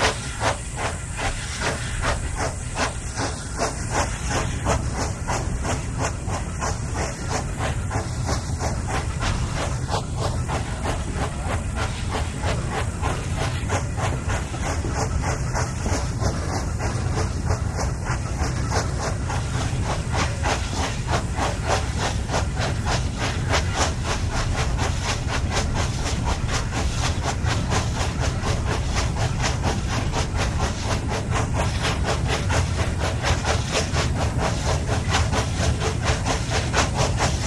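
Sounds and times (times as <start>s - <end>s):
steam train heard on board: 0.0s - 37.4s.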